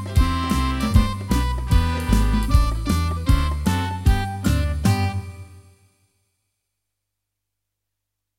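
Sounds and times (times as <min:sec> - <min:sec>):
Christmas song: 0:00.0 - 0:06.2.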